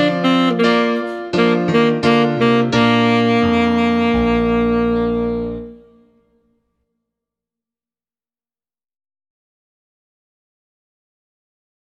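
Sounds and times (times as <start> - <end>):
baritone saxophone playing a minuet slowed down: 0.0 - 6.4.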